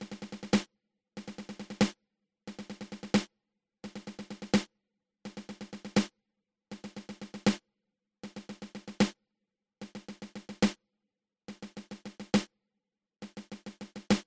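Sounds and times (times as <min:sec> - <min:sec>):
seven stroke roll on drum: 0:00.0 - 0:04.7, 0:05.3 - 0:06.1, 0:06.7 - 0:07.6, 0:08.2 - 0:09.2, 0:09.8 - 0:10.8, 0:11.5 - 0:12.5, 0:13.2 - 0:14.2.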